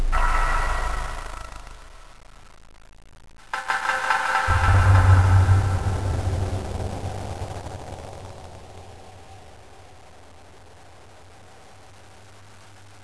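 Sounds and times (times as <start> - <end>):
metal music: 0.1 - 2.3, 3.4 - 7.6.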